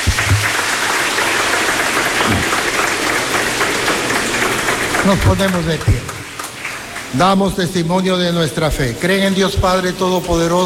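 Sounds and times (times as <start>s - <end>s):
audience applauding: 0.0s - 8.0s
speech: 5.0s - 6.1s, 7.1s - 10.6s.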